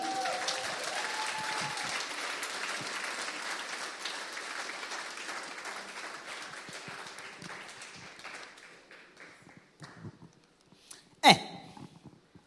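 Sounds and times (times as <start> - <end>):
whoop or cheer: 0.0 - 2.1
audience applause: 0.0 - 9.6.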